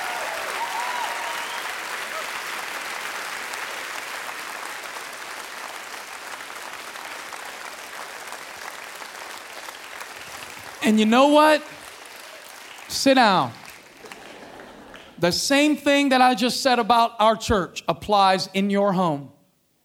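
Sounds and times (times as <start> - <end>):
audience clapping: 0.0 - 15.3
speech: 10.9 - 11.8, 12.9 - 13.6, 15.2 - 19.4.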